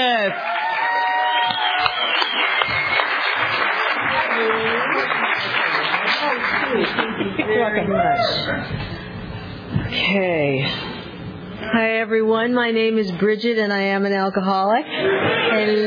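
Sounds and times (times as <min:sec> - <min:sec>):
speech: 0:00.0 - 0:00.6, 0:06.2 - 0:09.0, 0:09.9 - 0:10.9, 0:11.6 - 0:15.8
audience applause welcoming the main speaker at a Visalia or Tulare County meeting: 0:00.2 - 0:07.4
laughter: 0:04.6 - 0:08.9.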